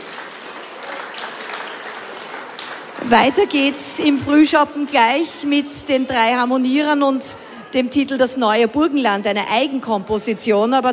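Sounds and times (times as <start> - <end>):
audience applause: 0.0 - 3.8
speech: 3.0 - 10.9.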